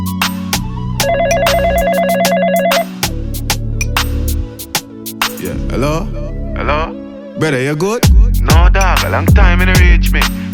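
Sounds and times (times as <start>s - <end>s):
telephone ringing with a warbling electronic trill: 1.0s - 3.0s
loud steady beat with sharp percussive hits: 1.0s - 5.5s, 8.0s - 10.5s
speech: 7.4s - 10.4s.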